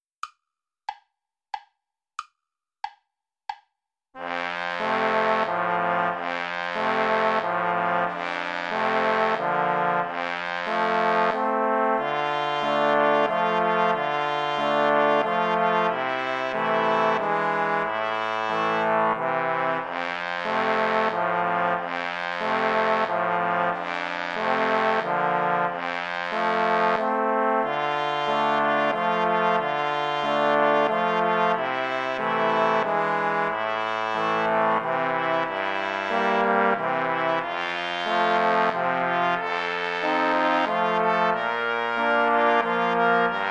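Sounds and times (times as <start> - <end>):
waltz play-along accompaniment without trumpet: 4.2 - 43.4.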